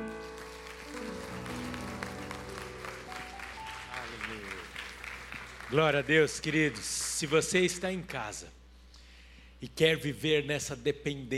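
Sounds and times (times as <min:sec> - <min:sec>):
audience applauding: 0:00.0 - 0:07.7
speech: 0:05.7 - 0:08.6, 0:09.6 - 0:11.3.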